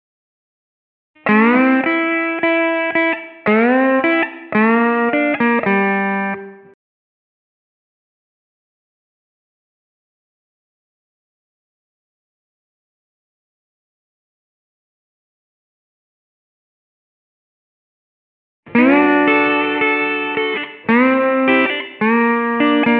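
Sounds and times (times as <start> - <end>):
slide guitar in G: 1.2 - 6.7, 18.7 - 22.9.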